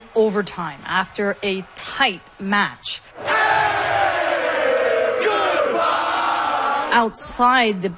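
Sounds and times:
speech: 0.2s - 3.1s, 7.0s - 7.9s
hockey fans cheering and yelling outside the Buffalo Arena after an overtime win: 3.2s - 7.0s.

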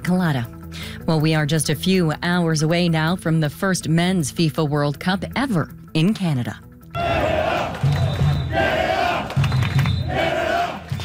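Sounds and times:
speech: 0.1s - 6.6s
crowd of fans marching and chanting: 7.0s - 11.0s.

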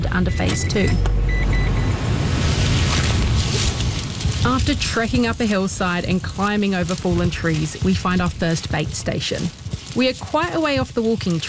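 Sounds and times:
faint whine: 0.0s - 5.0s
truck engine rumbling while driving: 0.0s - 9.4s
road noise: 0.0s - 11.4s
speech: 0.1s - 1.5s, 4.4s - 11.4s.

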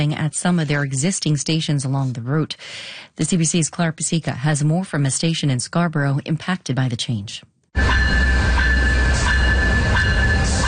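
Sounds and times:
speech: 0.0s - 8.6s
high sustained whine of train: 7.8s - 10.6s
passenger train arriving at station: 7.8s - 10.6s.

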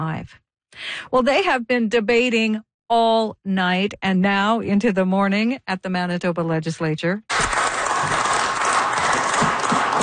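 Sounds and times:
speech: 0.0s - 8.2s
tired legislators clapping in the Manitoba Legislature chamber: 7.3s - 10.0s.

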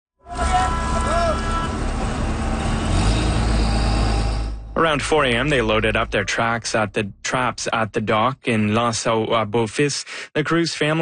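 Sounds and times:
lobster fishing boat engines revving and idling: 0.3s - 7.4s
speech: 4.8s - 11.0s.

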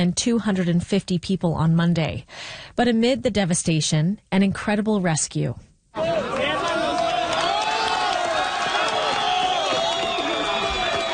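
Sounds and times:
speech: 0.0s - 6.1s
crowd cheering at earthquake rescue: 6.0s - 11.1s.

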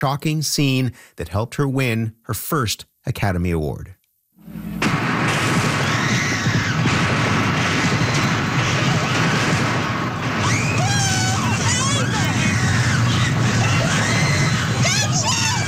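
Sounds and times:
speech: 0.0s - 4.6s
gunfire bangs during a shooting: 4.8s - 15.6s
crowd yelling and screaming: 5.5s - 15.6s.

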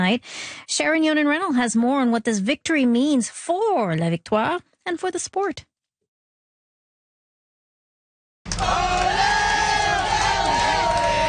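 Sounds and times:
speech: 0.0s - 5.7s, 8.6s - 9.2s
fans cheering the Montreal Victoire team off the bus with the Walter Cup: 8.5s - 11.2s.

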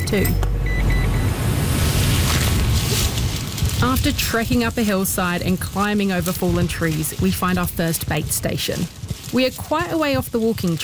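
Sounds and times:
truck engine rumble driving off: 0.0s - 10.8s
speech: 0.1s - 0.5s, 3.8s - 10.8s.

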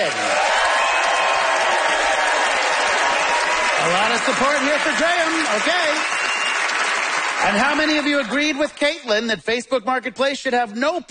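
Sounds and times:
audience applause: 0.0s - 8.8s
speech: 4.2s - 6.3s, 7.4s - 11.0s.

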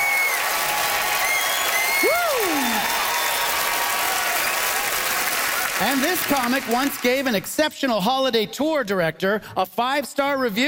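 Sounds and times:
crowd whooping: 0.0s - 6.1s
hometown crowd applauding: 0.0s - 7.6s
sharp whistles: 1.2s - 2.2s
speech: 5.8s - 10.6s.

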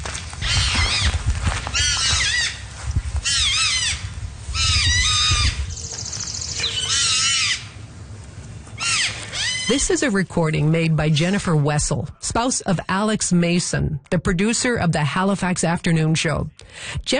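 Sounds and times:
low rumble: 0.0s - 12.2s
porcupine vocalizing loudly at dawn: 0.4s - 2.6s, 3.2s - 5.8s, 6.5s - 7.7s, 8.8s - 10.0s
speech: 9.7s - 17.1s.

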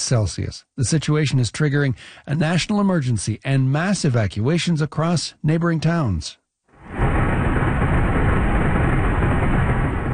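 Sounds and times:
speech: 0.1s - 6.4s
military plane dropping fire retardant over a wildfire in Lacanau Forest: 6.9s - 10.1s.

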